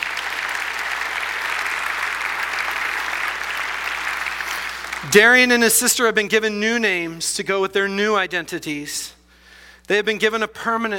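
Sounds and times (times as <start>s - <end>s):
audience applause: 0.0s - 5.1s
speech: 5.0s - 9.2s, 9.9s - 10.9s.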